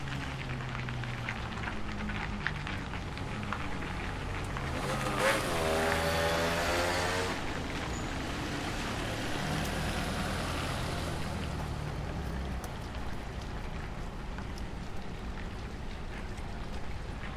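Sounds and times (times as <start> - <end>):
parking lot ambience: 0.0 - 17.3.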